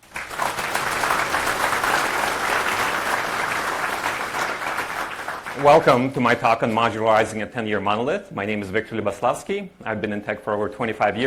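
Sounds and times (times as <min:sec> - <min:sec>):
audience applause: 0:00.0 - 0:06.4
speech: 0:05.6 - 0:11.2.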